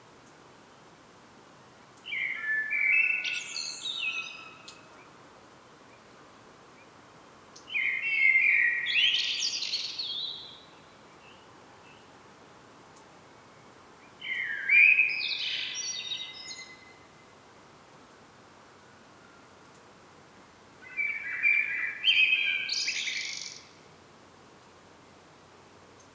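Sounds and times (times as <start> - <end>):
common blackbird song: 2.0 - 5.2, 7.6 - 12.2, 13.4 - 17.4, 20.8 - 23.8.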